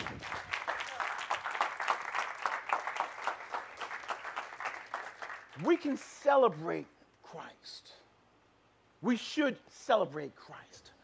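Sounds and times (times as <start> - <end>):
audience clapping: 0.0 - 6.0
speech: 5.6 - 8.0, 9.0 - 11.0.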